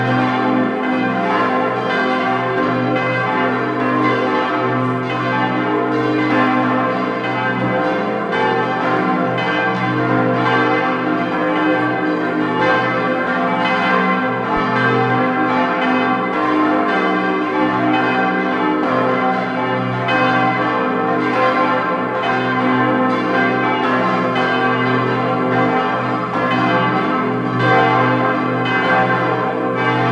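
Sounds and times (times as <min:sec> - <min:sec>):
bells ringing: 0:00.0 - 0:30.1.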